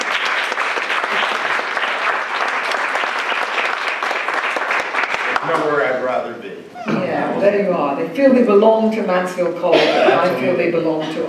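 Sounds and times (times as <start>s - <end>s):
rousing applause: 0.0s - 6.2s
speech: 7.4s - 11.2s
laughter: 9.6s - 11.2s.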